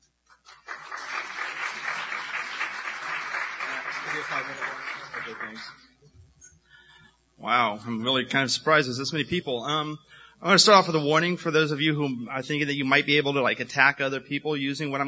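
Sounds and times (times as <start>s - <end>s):
audience applause: 0.4s - 5.9s
speech: 4.2s - 5.9s, 7.4s - 15.0s.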